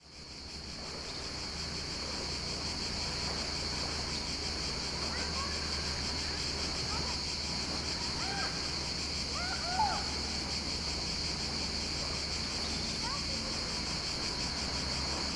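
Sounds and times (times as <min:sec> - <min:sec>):
cicadas buzzing at Vourvourou Sithonia Greece: 0:00.0 - 0:15.3.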